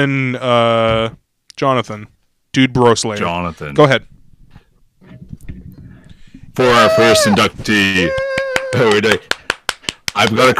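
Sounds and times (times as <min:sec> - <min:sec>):
speech: 0:00.0 - 0:04.2, 0:06.6 - 0:09.3, 0:10.2 - 0:10.5
crowd clapping: 0:08.1 - 0:10.4.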